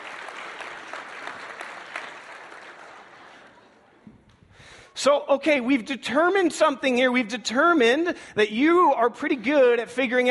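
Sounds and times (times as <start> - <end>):
audience applause: 0.0 - 3.8
speech: 5.0 - 10.2.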